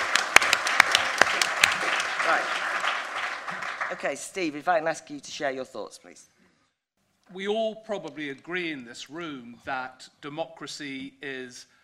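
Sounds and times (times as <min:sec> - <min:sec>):
audience applause welcoming a speaker at a talk on democracy: 0:00.0 - 0:04.4
speech: 0:02.3 - 0:02.6, 0:03.9 - 0:06.4, 0:07.3 - 0:11.8.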